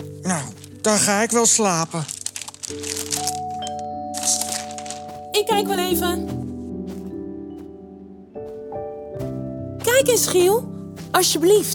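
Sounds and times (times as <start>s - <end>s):
paper crinkling as a present is wrapped: 0.0s - 6.4s
speech: 0.2s - 3.4s, 5.4s - 6.5s, 10.1s - 11.7s.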